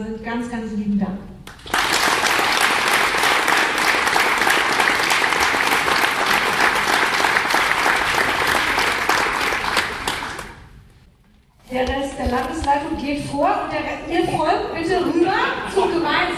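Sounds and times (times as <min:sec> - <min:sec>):
speech: 0:00.0 - 0:01.4, 0:12.4 - 0:16.3
audience applause: 0:01.5 - 0:10.6.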